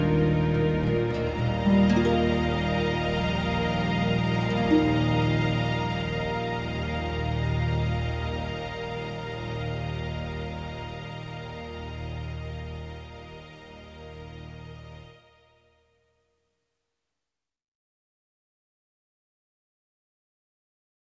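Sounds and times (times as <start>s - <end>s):
harps: 0.0s - 13.7s.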